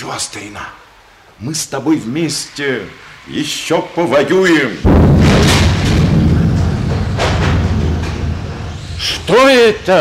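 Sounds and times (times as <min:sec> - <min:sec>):
speech: 0:00.1 - 0:05.6, 0:09.0 - 0:09.9
heavy booming low rumble: 0:04.8 - 0:09.2
fence crashing down in the wind: 0:04.9 - 0:08.8.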